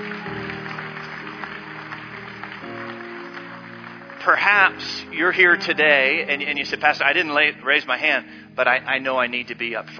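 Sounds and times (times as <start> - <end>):
audience applause: 0.0 - 5.6
speech: 4.2 - 9.9.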